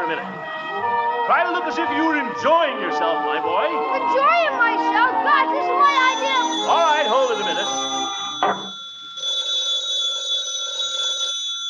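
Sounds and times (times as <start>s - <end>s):
speech: 1.3s - 8.6s
telephone bell ringing: 5.8s - 11.6s.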